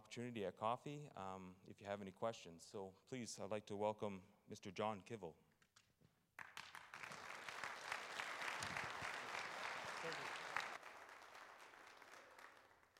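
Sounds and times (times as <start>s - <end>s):
speech: 0.2s - 5.4s
audience applause: 6.4s - 12.9s.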